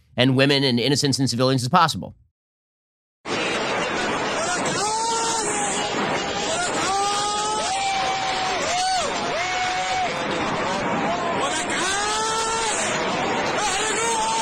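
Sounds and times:
speech: 0.2s - 2.2s
crowd shouting and cheering as rockets launch: 3.3s - 14.4s
loud rushing roar of rockets launching: 3.3s - 14.4s.

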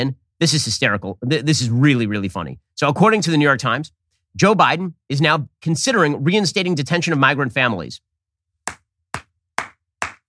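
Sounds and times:
speech: 0.0s - 8.1s
slow hand clap: 8.7s - 10.2s.

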